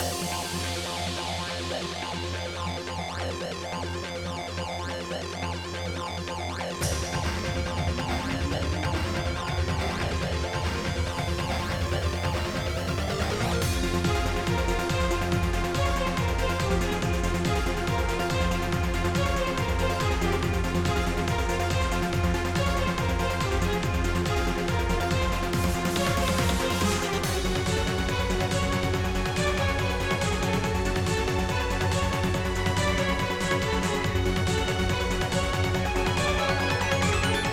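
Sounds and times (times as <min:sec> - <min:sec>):
heavy suspense music: 0:00.0 - 0:37.5.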